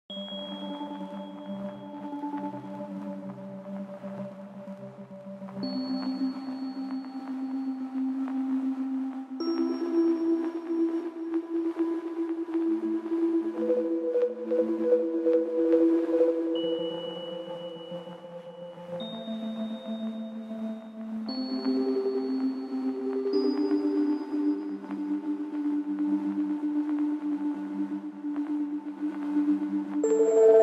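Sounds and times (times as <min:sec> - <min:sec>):
instrumental background music: 0:00.1 - 0:30.6.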